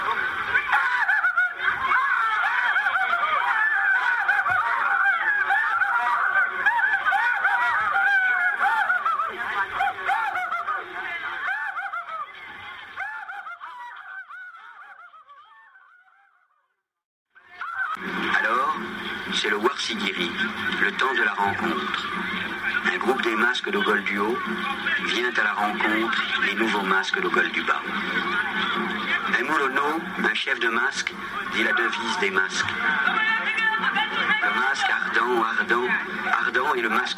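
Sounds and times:
laughter: 0:00.0 - 0:16.6, 0:17.4 - 0:37.1
masked dancers imitating a fox's cry: 0:00.0 - 0:16.6, 0:17.4 - 0:37.1
speech: 0:19.8 - 0:22.4, 0:23.3 - 0:33.4, 0:34.5 - 0:37.1.

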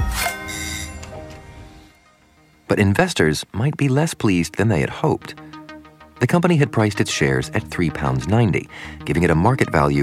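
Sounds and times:
doorbell chimes: 0:00.1 - 0:02.4
bicycle bell ringing: 0:00.2 - 0:01.1
speech: 0:02.7 - 0:05.4, 0:06.2 - 0:10.0.

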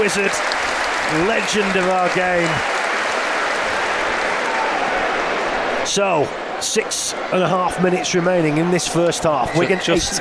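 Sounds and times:
speech: 0:00.0 - 0:02.8, 0:05.9 - 0:10.1
stadium crowd applause: 0:00.0 - 0:05.9.

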